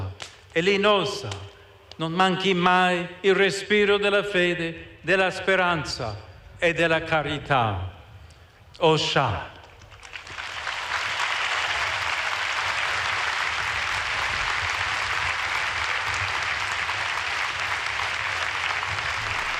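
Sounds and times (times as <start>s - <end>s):
speech: 0.6s - 8.0s, 8.8s - 9.5s
large stadium crowd applauding: 9.8s - 19.5s.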